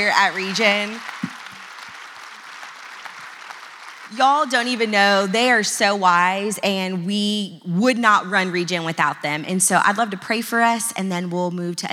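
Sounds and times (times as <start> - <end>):
speech: 0.0 - 1.1, 4.1 - 11.9
audience round of applause: 0.0 - 5.5.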